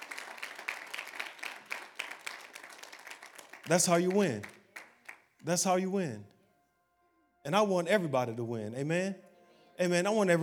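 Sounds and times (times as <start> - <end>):
audience hand clapping in praise: 0.0 - 5.5
speech: 3.7 - 4.6, 5.4 - 6.4, 7.4 - 10.4.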